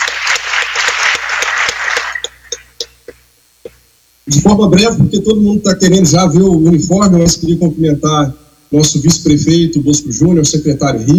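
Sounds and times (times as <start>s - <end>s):
crowd applause: 0.0s - 2.7s
speech: 4.3s - 11.1s.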